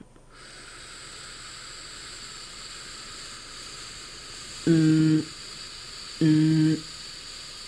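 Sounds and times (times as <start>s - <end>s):
generated noise hiss effect: 0.0s - 7.6s
speech: 4.6s - 5.4s.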